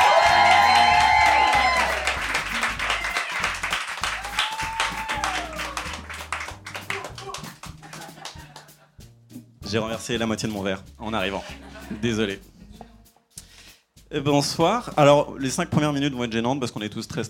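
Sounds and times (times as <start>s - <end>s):
scattered cheers: 0.0s - 7.5s
audience applause: 0.0s - 8.7s
music: 0.0s - 17.2s
laughter: 5.2s - 9.0s, 11.3s - 12.2s
speech: 9.7s - 12.5s, 14.1s - 17.2s.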